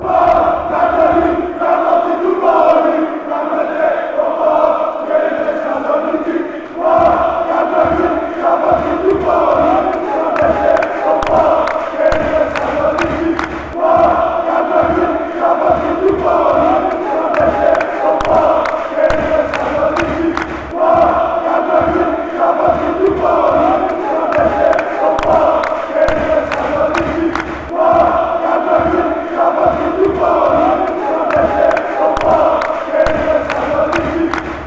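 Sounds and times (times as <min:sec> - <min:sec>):
football fan chant: 0:00.0 - 0:34.6.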